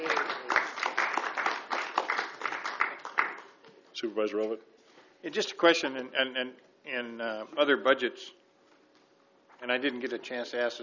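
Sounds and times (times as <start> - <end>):
audience applause: 0.0 - 3.6
speech: 4.0 - 8.4, 9.6 - 10.8.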